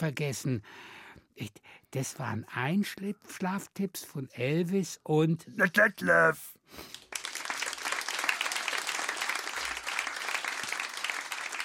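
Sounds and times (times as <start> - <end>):
speech: 0.0 - 7.0
audience applause: 6.9 - 11.6.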